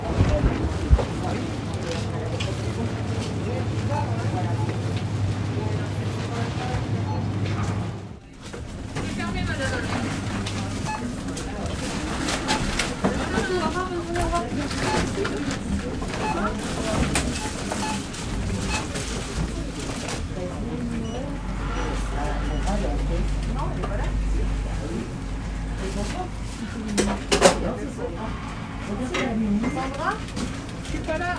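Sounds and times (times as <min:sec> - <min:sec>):
overlapping voices and chatter in bustling hallways: 0:00.0 - 0:31.3
low hum: 0:20.2 - 0:31.3.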